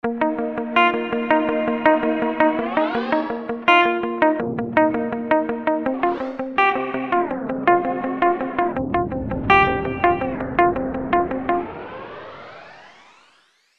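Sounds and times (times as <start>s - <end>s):
guitar morphing FX glide modulation: 0.1s - 13.6s.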